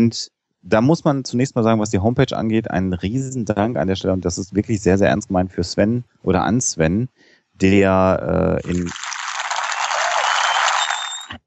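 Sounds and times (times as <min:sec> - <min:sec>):
speech: 0:00.0 - 0:09.1
applause jingle from a soundboard: 0:08.6 - 0:11.4.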